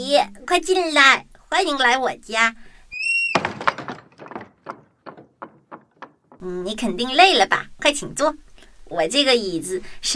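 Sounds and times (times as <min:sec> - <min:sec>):
speech: 0:00.0 - 0:02.7, 0:06.4 - 0:10.1
door being opened: 0:03.0 - 0:06.4.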